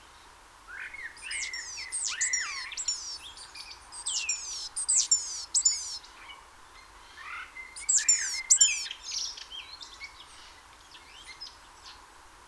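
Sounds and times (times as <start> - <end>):
Great tit calls: 1.0 - 6.1, 7.2 - 9.3.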